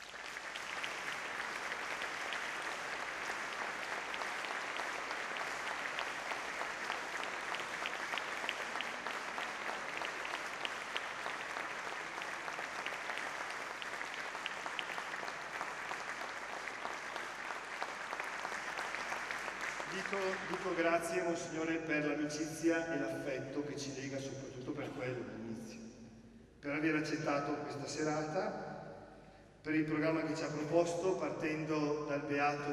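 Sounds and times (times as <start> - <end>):
audience applause: 0.0 - 21.2
speech: 20.1 - 25.8, 26.6 - 28.6, 29.6 - 32.7.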